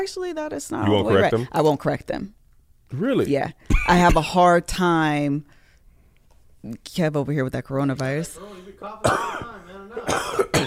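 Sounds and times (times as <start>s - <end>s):
speech: 0.0s - 5.6s, 6.6s - 10.4s
man clearing throat: 9.0s - 10.6s
man coughing with a persistent cough: 9.0s - 10.6s.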